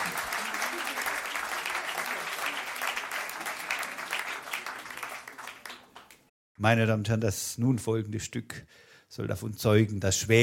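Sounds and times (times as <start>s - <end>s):
audience applause: 0.0s - 6.3s
speech: 6.6s - 10.4s.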